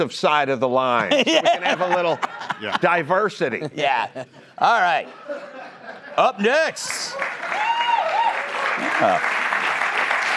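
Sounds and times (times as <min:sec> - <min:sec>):
speech: 0:00.0 - 0:05.6, 0:06.2 - 0:07.4, 0:08.9 - 0:09.4
laughter: 0:01.0 - 0:07.2
studio audience applause: 0:06.3 - 0:10.3.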